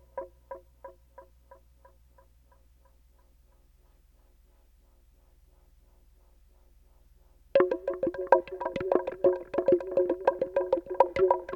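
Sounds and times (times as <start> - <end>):
drum: 7.6 - 11.5.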